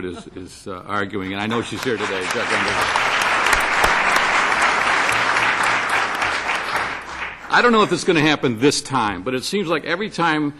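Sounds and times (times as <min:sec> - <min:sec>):
speech: 0:00.0 - 0:03.3, 0:07.5 - 0:10.5
audience applause: 0:01.3 - 0:08.5.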